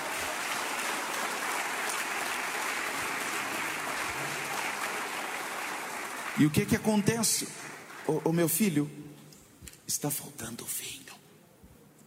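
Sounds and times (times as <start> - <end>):
audience applauding: 0.0 - 8.7
speech: 6.4 - 9.2, 9.9 - 11.0.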